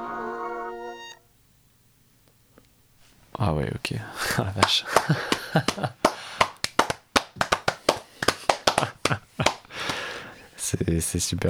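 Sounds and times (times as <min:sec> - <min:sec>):
speech: 0:03.4 - 0:06.0, 0:10.8 - 0:11.4
laughter: 0:04.2 - 0:06.4, 0:08.1 - 0:10.2
hands clapping: 0:04.6 - 0:10.3.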